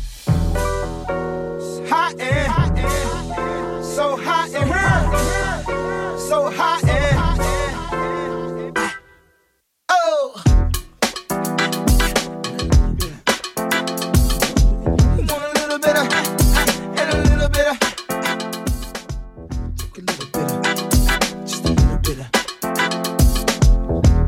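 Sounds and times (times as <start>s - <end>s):
music track: 0.2s - 9.3s, 10.5s - 24.2s.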